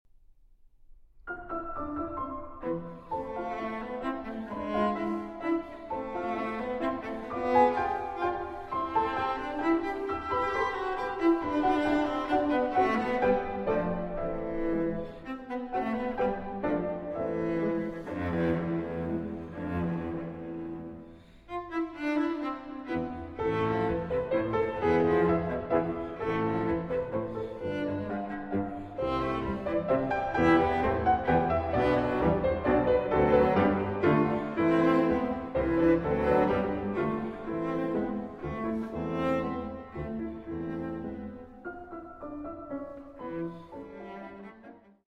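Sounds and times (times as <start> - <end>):
piano: 0.1 - 45.0
cello: 1.2 - 45.0.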